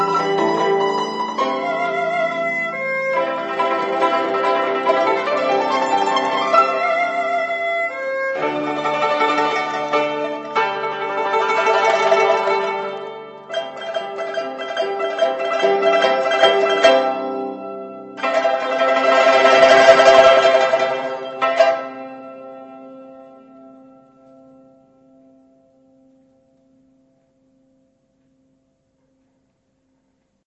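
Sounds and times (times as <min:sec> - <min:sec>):
song: 0:00.0 - 0:23.6.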